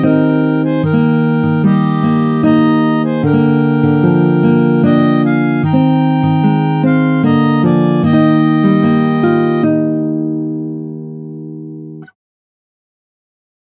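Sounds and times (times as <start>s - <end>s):
harmonica playing a hymn: 0.0s - 10.4s.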